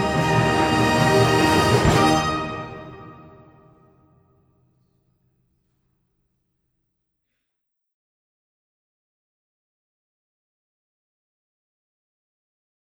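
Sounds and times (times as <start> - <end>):
fanfare: 0.0 - 3.7.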